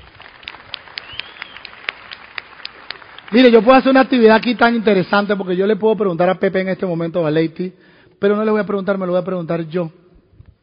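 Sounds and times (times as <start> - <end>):
crowd applauding: 0.0 - 4.8
speech: 3.3 - 10.0.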